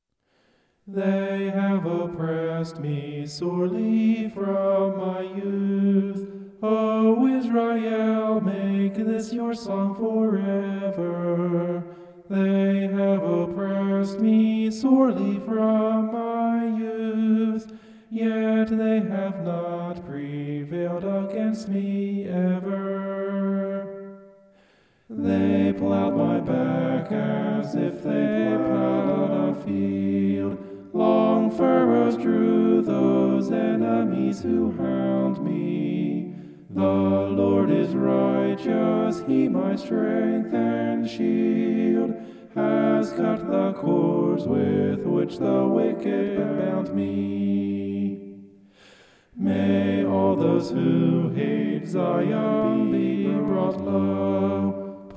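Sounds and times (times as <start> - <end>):
homophonic vocals: 0.9 - 24.5, 25.1 - 48.6, 49.3 - 55.1.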